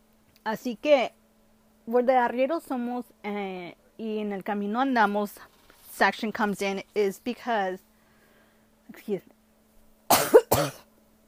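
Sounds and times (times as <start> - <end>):
speech: 0.4 - 1.2, 1.9 - 7.9, 8.9 - 9.3, 10.6 - 10.8
coughing from fumes of chile roasting on a comal: 10.1 - 10.9.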